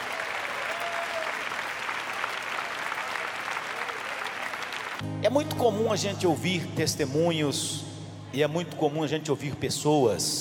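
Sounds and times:
audience applause: 0.0 - 5.0
speech: 5.1 - 10.4.

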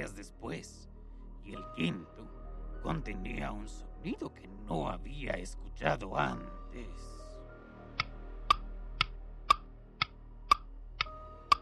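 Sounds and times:
speech: 0.0 - 7.2
living room clock ticking: 8.5 - 11.6.

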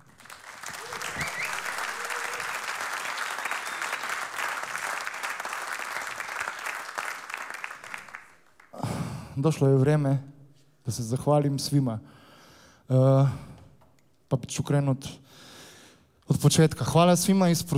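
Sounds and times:
televised show audience applauding a band: 0.0 - 8.7
speech: 9.4 - 10.3, 10.9 - 12.2, 12.9 - 13.5, 14.3 - 15.4, 16.3 - 17.7.

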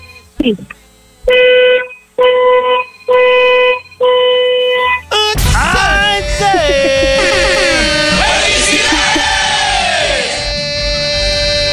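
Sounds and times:
speech: 0.4 - 2.8
long car horn honks: 1.2 - 5.3, 7.1 - 11.7
laughter: 6.2 - 10.4.

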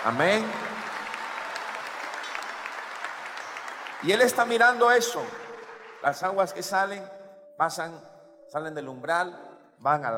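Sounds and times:
speech: 0.0 - 0.6, 4.0 - 5.4, 6.0 - 10.1
audience applause: 0.0 - 6.6.

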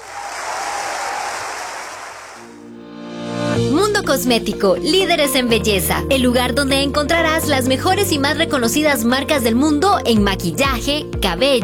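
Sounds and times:
applause welcoming a youth symphony orchestra: 0.0 - 2.6
sustained musical tone: 2.6 - 11.6
speech: 4.1 - 11.6.

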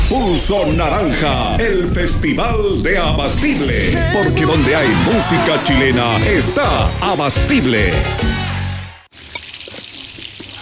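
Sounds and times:
speech: 0.1 - 8.5
water running from a kitchen tap: 9.1 - 10.5.

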